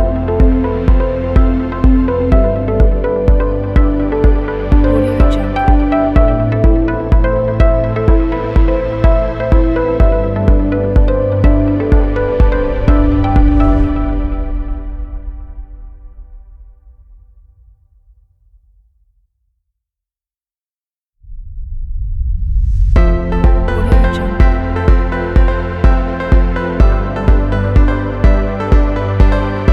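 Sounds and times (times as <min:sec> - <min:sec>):
motivational inspiring upbeat ambient music: 0:00.0 - 0:16.4, 0:23.0 - 0:29.7.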